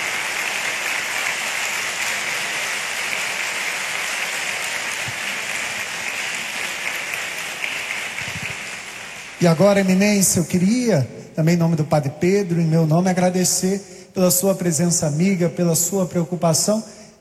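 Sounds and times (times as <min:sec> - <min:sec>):
audience applause: 0:00.0 - 0:09.9
speech: 0:09.4 - 0:17.0.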